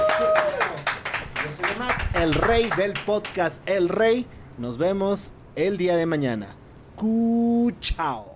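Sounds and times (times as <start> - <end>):
small group applauding: 0.0 - 3.6
speech: 2.2 - 8.3.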